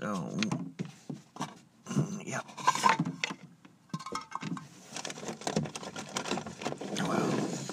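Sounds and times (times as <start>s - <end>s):
speech: 0.0s - 0.7s
rummaging for dropped pencils behind a desk: 2.5s - 3.4s, 4.0s - 7.7s.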